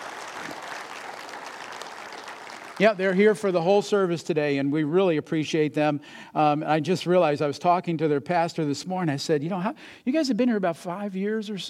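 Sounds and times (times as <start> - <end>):
audience applause: 0.0 - 3.1
speech: 2.8 - 11.6.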